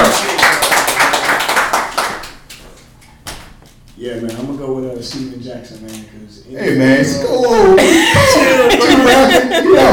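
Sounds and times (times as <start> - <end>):
small group applauding: 0.0 - 2.6
speech: 4.6 - 9.9
laughter: 7.2 - 9.9.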